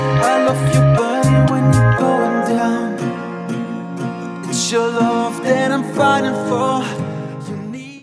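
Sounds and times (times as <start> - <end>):
ringtone: 0.0 - 6.2.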